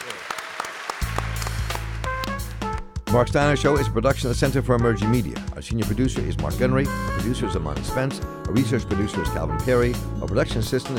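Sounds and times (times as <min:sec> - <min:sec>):
audience applause: 0:00.0 - 0:02.8
speech: 0:03.1 - 0:10.9.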